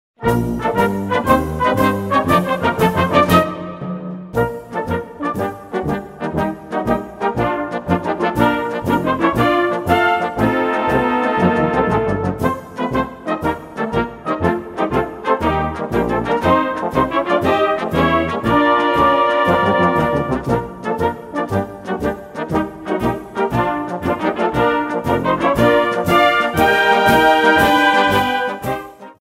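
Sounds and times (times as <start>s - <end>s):
tarantella dance music: 0.4s - 29.0s.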